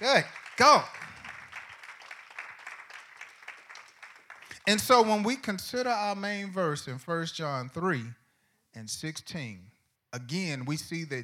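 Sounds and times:
audience clapping hands: 0.0 - 5.6
speech: 0.1 - 1.0, 4.7 - 11.2.

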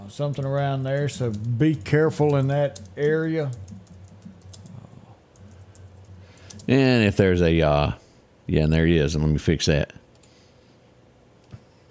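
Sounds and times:
low steady hum: 0.0 - 11.8
speech: 0.1 - 3.8, 6.7 - 10.0
typing on a computer keyboard: 0.3 - 6.8.

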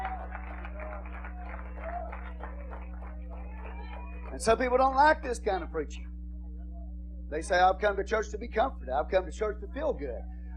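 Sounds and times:
audience clapping hands in praise: 0.0 - 5.1
low electrical hum: 0.0 - 10.5
speech: 4.4 - 6.1, 7.3 - 10.4.

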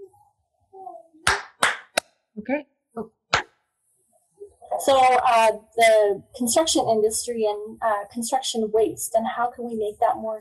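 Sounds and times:
hand claps marking an edit point: 1.2 - 2.1
speech: 2.4 - 3.5, 4.8 - 10.3.

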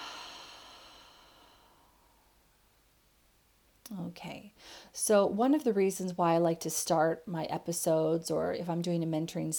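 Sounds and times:
slow breath out during a guided breathing exercise: 0.0 - 2.3
speech: 3.9 - 9.5.

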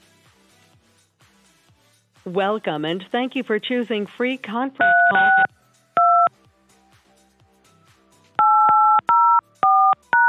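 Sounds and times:
speech: 2.2 - 5.5
touch-tone keypad beeps dialing a conference call access code: 4.8 - 6.3, 8.4 - 10.2.

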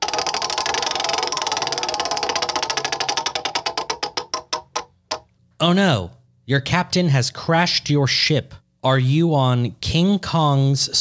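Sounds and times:
prize wheel spinning: 0.0 - 5.2
speech: 5.6 - 10.9.

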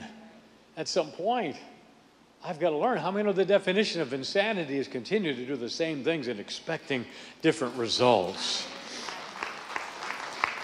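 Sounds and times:
faint hiss: 0.0 - 10.6
speech: 0.8 - 1.8, 2.4 - 8.8
golf clap: 8.3 - 10.6.

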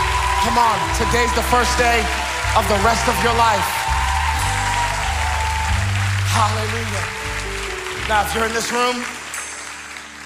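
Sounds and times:
audience clapping: 0.0 - 10.2
speech: 0.4 - 3.8, 6.4 - 7.4, 8.1 - 9.2.

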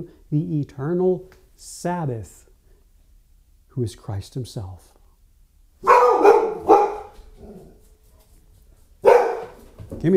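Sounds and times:
speech: 0.0 - 2.4, 3.8 - 5.0, 10.0 - 10.1
female dog barking at something outside: 5.8 - 7.8, 9.0 - 9.6.

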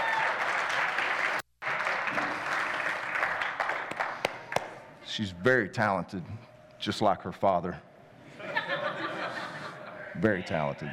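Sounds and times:
crowd applause: 0.0 - 4.7
speech: 5.2 - 7.9, 10.2 - 10.9
laughter: 8.3 - 10.2.

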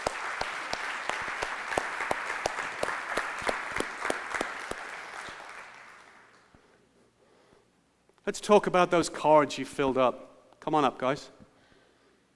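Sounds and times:
audience applause: 0.0 - 6.5
speech: 8.3 - 11.4.

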